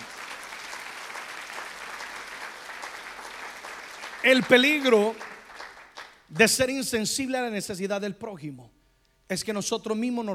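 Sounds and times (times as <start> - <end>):
audience applauding: 0.0 - 6.6
speech: 4.2 - 5.3, 6.3 - 10.3.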